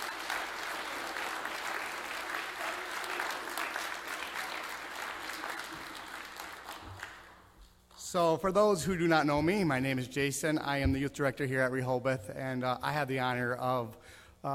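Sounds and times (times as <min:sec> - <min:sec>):
audience applause for the seniors: 0:00.0 - 0:07.5
speech: 0:08.1 - 0:14.5.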